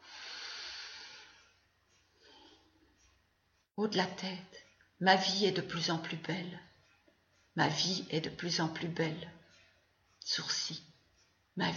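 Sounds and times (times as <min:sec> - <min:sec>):
deep breath: 0:00.0 - 0:02.8
speech: 0:03.8 - 0:06.7, 0:07.6 - 0:09.4, 0:10.2 - 0:10.9, 0:11.6 - 0:11.7.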